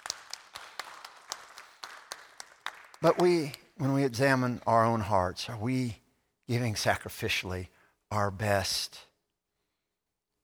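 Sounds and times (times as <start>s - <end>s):
audience clapping: 0.0s - 4.9s
speech: 3.0s - 9.1s.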